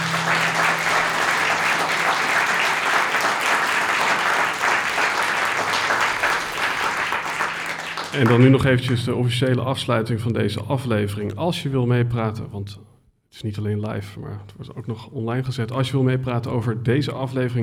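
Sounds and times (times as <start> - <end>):
audience applause: 0.0 - 9.0
speech: 8.2 - 17.6.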